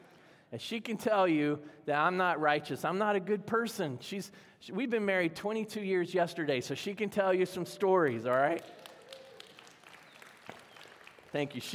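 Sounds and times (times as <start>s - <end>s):
speech: 0.5s - 8.8s, 11.3s - 11.7s
audience clapping: 8.0s - 11.7s.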